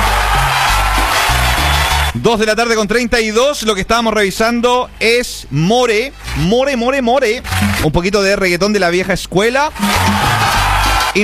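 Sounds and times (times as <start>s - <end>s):
applause: 0.0s - 2.2s, 7.4s - 7.9s, 9.8s - 11.2s
speech: 2.2s - 10.4s.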